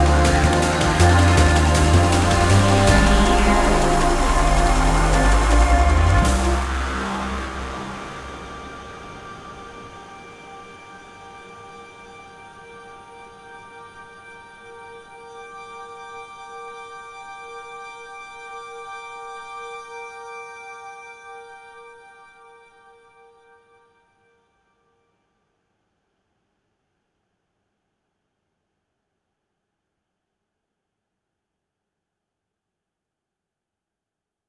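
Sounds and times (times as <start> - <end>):
fight music at 160 BPM: 0.0 - 9.0.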